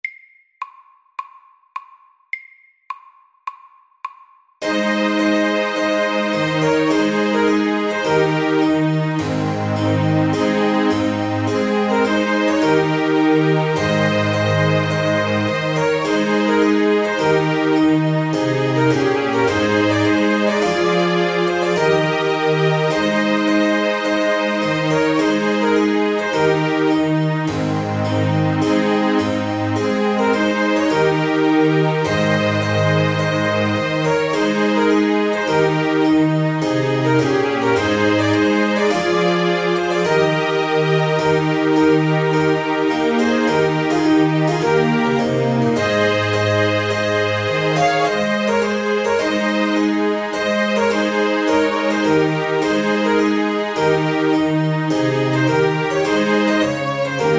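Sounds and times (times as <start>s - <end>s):
trumpet tune: 4.6s - 57.3s.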